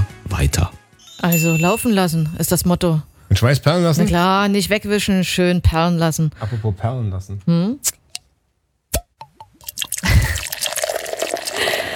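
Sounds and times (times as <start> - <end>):
speech: 0.4 - 8.0
water poured into a glass: 9.6 - 11.9.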